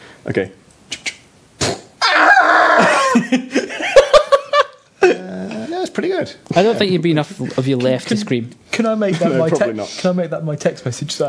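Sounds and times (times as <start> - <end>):
speech: 0.2 - 0.6, 6.0 - 11.2
person vocally imitating someone attempting a rocket jump: 1.6 - 3.1
laughter: 2.7 - 5.3.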